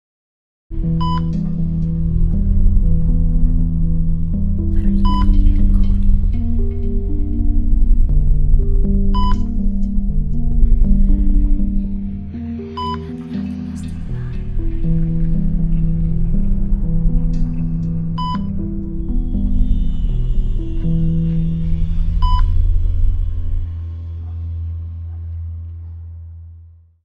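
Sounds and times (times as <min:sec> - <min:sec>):
horror music: 0:00.7 - 0:26.7.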